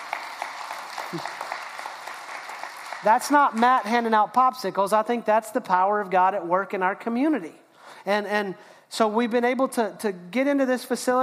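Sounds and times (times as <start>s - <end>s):
audience clapping: 0.0s - 3.9s
speech: 1.1s - 1.4s, 3.0s - 11.2s.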